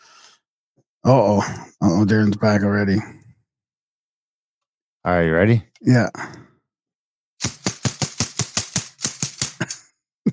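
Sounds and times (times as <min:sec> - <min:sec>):
speech: 0:01.0 - 0:03.2, 0:05.0 - 0:06.4
BB gun dry-firing without BBs: 0:07.4 - 0:09.8.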